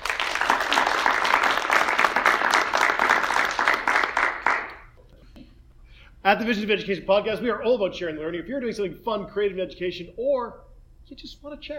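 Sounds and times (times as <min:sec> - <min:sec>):
audience applause: 0:00.0 - 0:04.9
speech: 0:06.3 - 0:11.7.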